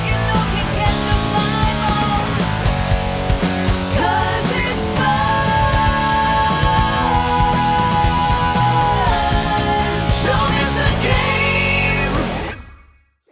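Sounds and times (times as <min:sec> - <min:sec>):
electric karaoke music: 0:00.0 - 0:12.8.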